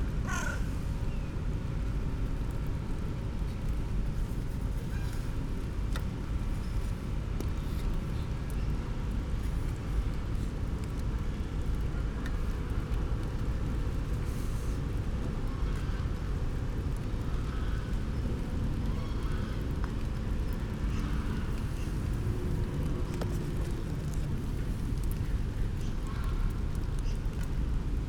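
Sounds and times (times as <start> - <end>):
rain: 0.0 - 28.0
crow calls: 0.2 - 0.8.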